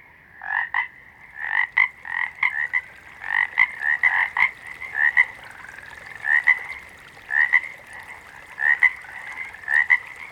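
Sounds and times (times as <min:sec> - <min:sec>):
water frog double croaks: 0:00.6 - 0:10.3.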